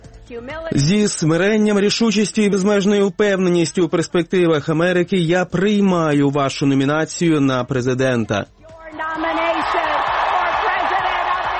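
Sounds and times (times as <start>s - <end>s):
speech: 0.3s - 9.3s
large audience applauding: 9.2s - 11.5s
whoops: 9.6s - 11.5s.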